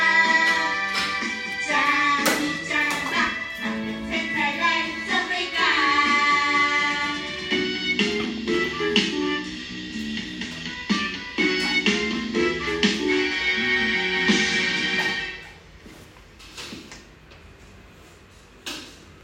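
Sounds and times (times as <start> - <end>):
Hokkien song: 0.0 - 15.4.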